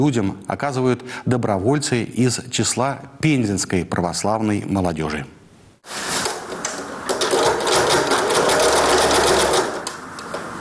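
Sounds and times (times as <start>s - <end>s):
speech: 0.0s - 6.1s
sewing machine stitching masks: 7.0s - 9.9s.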